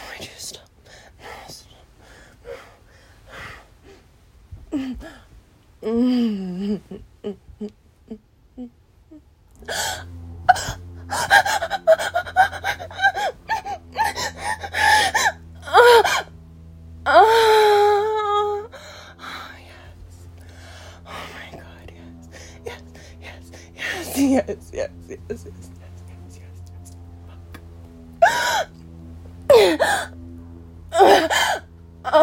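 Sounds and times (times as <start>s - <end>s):
person moaning: 4.7s - 5.2s, 5.8s - 16.3s, 17.1s - 26.0s, 28.2s - 28.7s, 29.5s - 30.2s, 30.9s - 32.2s
person whimpering: 4.7s - 16.3s, 17.1s - 26.6s, 28.2s - 28.7s, 29.5s - 30.2s, 30.9s - 32.2s.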